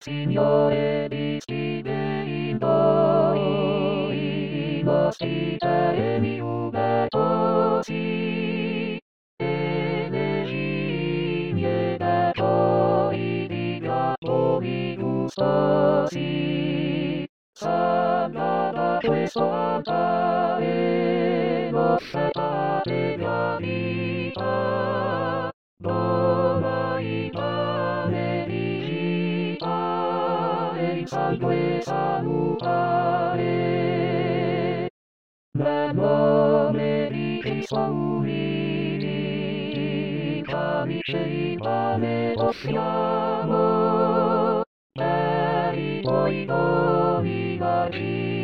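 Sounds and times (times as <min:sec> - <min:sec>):
choir singing: 0:00.0 - 0:34.9, 0:35.6 - 0:48.4.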